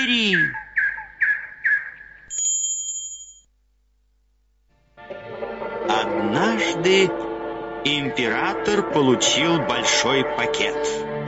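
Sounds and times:
nightingale singing: 0:00.0 - 0:02.5
speech: 0:00.1 - 0:00.6, 0:06.6 - 0:11.1.

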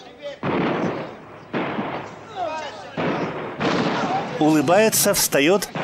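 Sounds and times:
grenade explosion: 0:00.4 - 0:04.5, 0:05.7 - 0:05.8
speech: 0:04.4 - 0:05.8.

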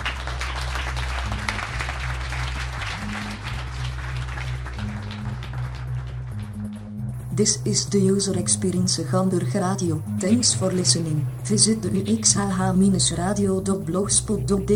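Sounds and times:
audience applause: 0:00.0 - 0:06.7
low sustained musical tone or hum: 0:00.0 - 0:14.7
speech: 0:07.4 - 0:14.7.

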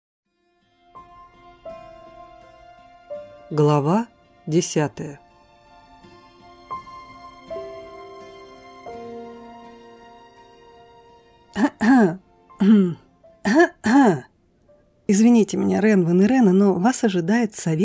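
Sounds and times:
speech: 0:03.5 - 0:05.2, 0:15.5 - 0:17.8
throat clearing cough: 0:11.6 - 0:14.0.

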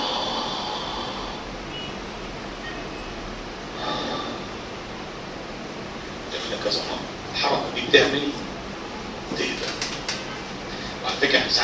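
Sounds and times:
deep breathing in a relaxation exercise: 0:00.0 - 0:01.6, 0:03.7 - 0:04.8, 0:10.6 - 0:11.1
constant hiss: 0:00.0 - 0:11.6
speech: 0:06.7 - 0:08.4, 0:11.2 - 0:11.6.

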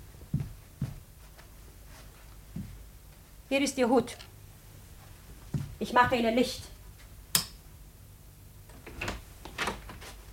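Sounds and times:
speech: 0:03.5 - 0:04.3, 0:05.8 - 0:06.7
door being opened: 0:08.7 - 0:10.0.

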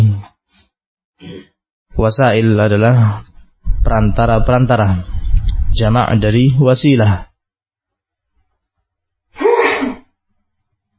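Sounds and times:
speech: 0:02.0 - 0:05.1, 0:05.8 - 0:07.3
sneeze: 0:09.4 - 0:10.1.

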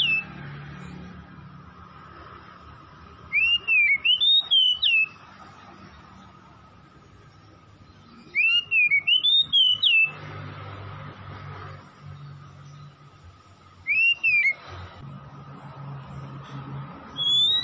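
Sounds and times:
Oriental magpie-robin song: 0:00.0 - 0:00.3, 0:03.2 - 0:05.2, 0:07.8 - 0:10.2, 0:13.8 - 0:14.7, 0:17.1 - 0:17.6.

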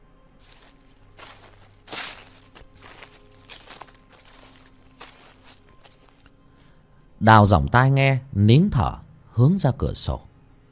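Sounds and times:
footsteps crunching on dry leaves: 0:00.4 - 0:06.3
speech: 0:07.2 - 0:10.3.

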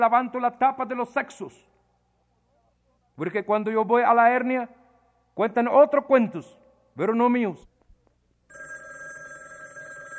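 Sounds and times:
speech: 0:00.0 - 0:01.7, 0:03.2 - 0:04.8, 0:05.4 - 0:07.7
telephone bell ringing: 0:08.5 - 0:10.1.

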